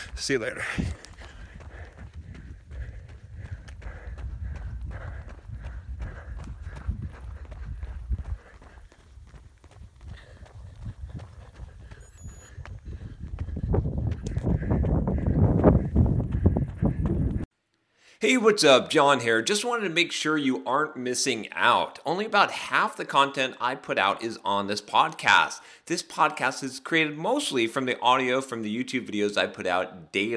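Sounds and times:
footsteps of a person running: 0.0 - 17.5
speech: 0.2 - 1.1, 18.3 - 30.3.

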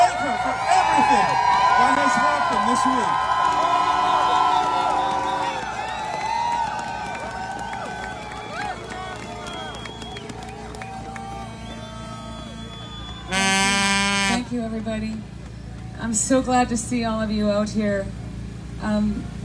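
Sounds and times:
crowd applause and cheering: 0.0 - 14.4
speech: 2.1 - 3.8, 16.0 - 18.2, 18.8 - 19.4.

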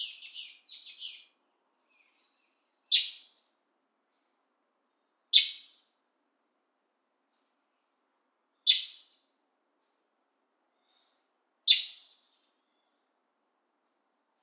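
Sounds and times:
bird chattering and calling on the Yucatan Peninsula: 0.0 - 1.3, 2.9 - 3.5, 8.7 - 9.1, 11.7 - 12.4.

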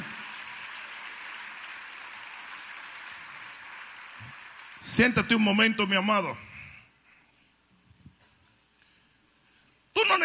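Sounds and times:
audience applause: 0.0 - 5.3
speech: 4.8 - 6.4.

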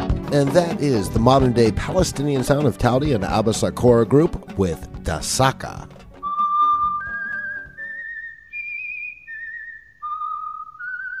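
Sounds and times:
low musical accompaniment: 0.0 - 7.9
speech: 0.3 - 5.9
person whistling a tune: 6.2 - 11.1.

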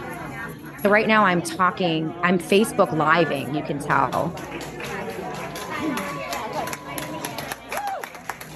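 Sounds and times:
speech: 0.8 - 4.7
crowd applauding: 4.3 - 8.5.

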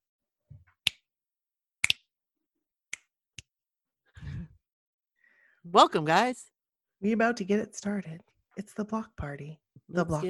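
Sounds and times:
finger snapping: 1.8 - 2.0
speech: 5.7 - 10.2.

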